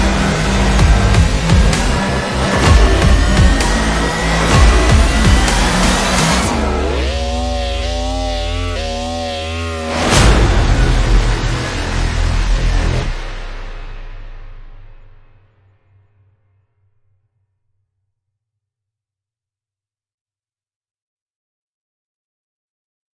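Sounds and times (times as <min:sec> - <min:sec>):
synth music: 0:00.0 - 0:15.0.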